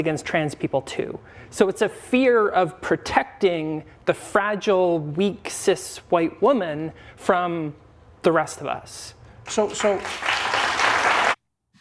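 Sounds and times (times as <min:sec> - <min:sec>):
speech: 0:00.0 - 0:10.3
audience applause: 0:09.7 - 0:11.4.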